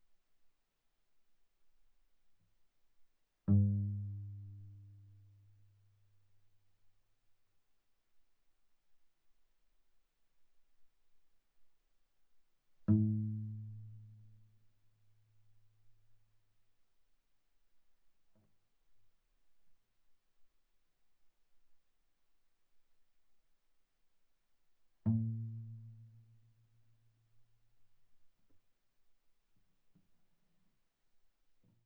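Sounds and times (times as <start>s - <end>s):
viola pizzicato on the G string: 3.5s - 5.3s, 12.9s - 14.0s, 25.1s - 26.2s.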